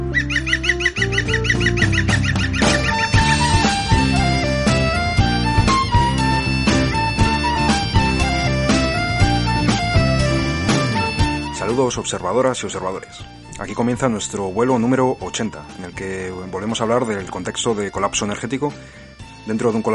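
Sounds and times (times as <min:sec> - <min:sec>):
bird calling: 0:00.0 - 0:11.9
speech: 0:11.8 - 0:19.9.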